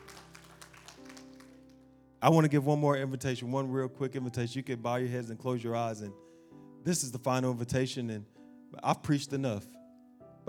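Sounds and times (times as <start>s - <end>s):
audience hand clapping: 0.0s - 2.0s
speech: 2.2s - 6.2s, 6.8s - 9.8s.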